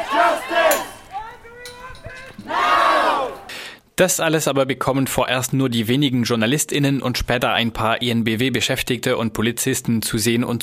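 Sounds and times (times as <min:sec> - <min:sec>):
protesters chanting slogans: 0:00.0 - 0:03.5
speech: 0:04.0 - 0:10.6.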